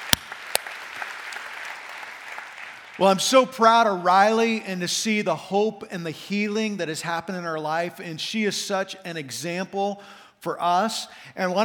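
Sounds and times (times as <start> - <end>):
sharp loud claps: 0.0 - 2.9
church congregation applauding: 0.0 - 3.3
speech: 3.0 - 11.6.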